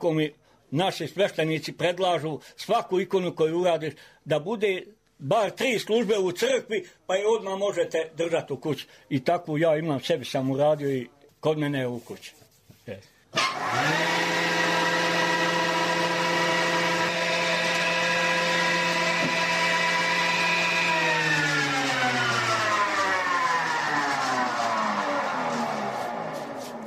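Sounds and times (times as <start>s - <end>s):
speech: 0.0s - 14.4s
combination woodworking machine running: 13.4s - 26.8s.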